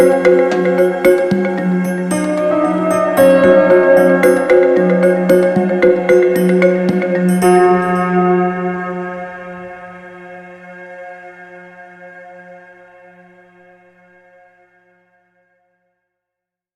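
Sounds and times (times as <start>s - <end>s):
marimba: 0.0s - 8.2s.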